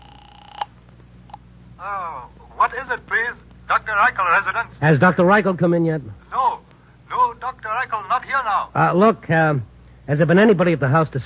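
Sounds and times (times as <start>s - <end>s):
telephone tone from a phone booth: 0.0s - 1.4s
speech: 1.8s - 6.3s, 8.4s - 11.2s.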